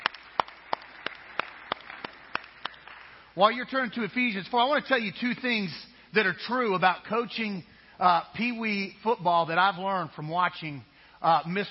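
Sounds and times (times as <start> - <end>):
slow steady claps: 0.0 - 3.2
speech: 3.4 - 11.6.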